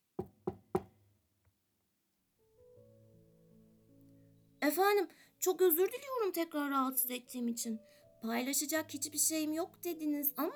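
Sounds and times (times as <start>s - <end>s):
knocking on a door: 0.2s - 1.0s
speech: 4.6s - 10.5s.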